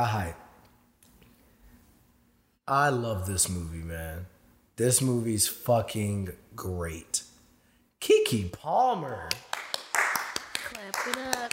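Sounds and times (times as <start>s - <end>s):
speech: 0.0s - 0.4s, 2.7s - 7.3s, 8.0s - 9.5s
hands clapping: 9.1s - 11.5s.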